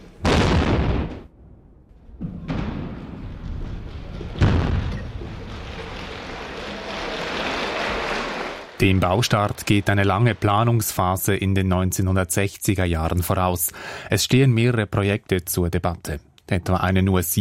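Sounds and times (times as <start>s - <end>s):
tunnel construction blasting explosion: 0.2s - 6.0s
applause: 5.2s - 11.2s
speech: 8.8s - 17.3s.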